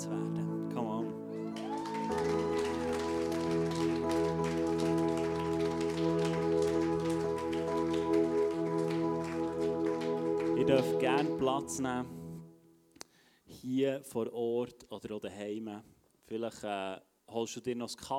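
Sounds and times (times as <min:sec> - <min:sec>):
held organ-like chords: 0:00.0 - 0:12.8
crowd applauding: 0:01.3 - 0:11.6
speech: 0:10.7 - 0:12.2, 0:13.6 - 0:18.1.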